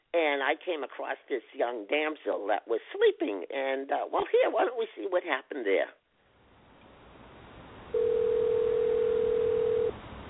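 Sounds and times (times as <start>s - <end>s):
speech: 0.2s - 6.0s
faint phone line hiss: 7.9s - 10.0s
telephone tone on a call to an emergency line: 7.9s - 10.0s.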